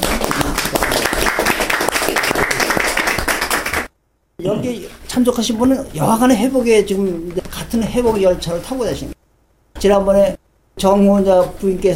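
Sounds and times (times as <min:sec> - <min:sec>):
welcome applause from audience: 0:00.0 - 0:03.9
speech: 0:04.4 - 0:09.2, 0:09.8 - 0:11.9.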